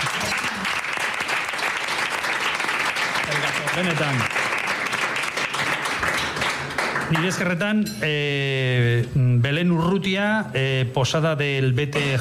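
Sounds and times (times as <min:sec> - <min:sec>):
audience applause: 0:00.0 - 0:07.5
speech: 0:03.8 - 0:04.4, 0:07.1 - 0:12.1.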